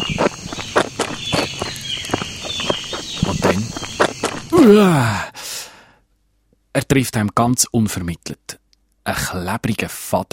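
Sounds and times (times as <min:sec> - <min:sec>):
footsteps crunching while walking through a forest: 0:00.0 - 0:04.7
speech: 0:04.6 - 0:05.3, 0:06.8 - 0:10.3.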